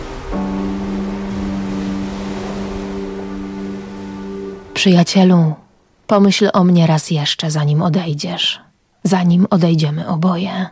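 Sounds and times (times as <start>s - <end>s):
waves breaking on a sandy shore: 0.0s - 5.1s
speech: 4.8s - 10.6s.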